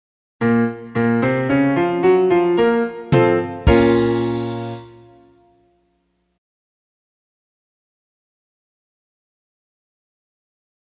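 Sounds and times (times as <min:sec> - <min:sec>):
music in B-flat minor: 0:00.4 - 0:06.0.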